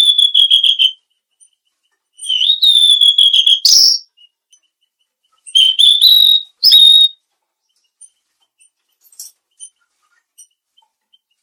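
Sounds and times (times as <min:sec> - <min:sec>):
mangrove blue flycatcher whistling: 0:00.0 - 0:01.0, 0:02.2 - 0:04.1, 0:05.5 - 0:07.2.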